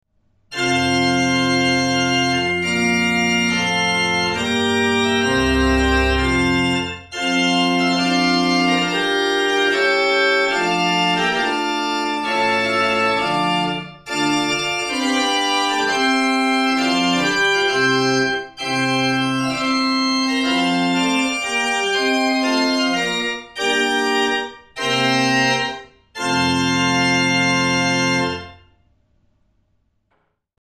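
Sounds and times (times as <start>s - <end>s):
positive organ: 0.5s - 28.6s.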